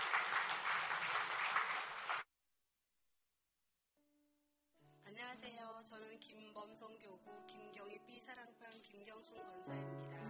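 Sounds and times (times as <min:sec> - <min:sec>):
crowd applauding: 0:00.0 - 0:02.2
speech: 0:05.2 - 0:10.2.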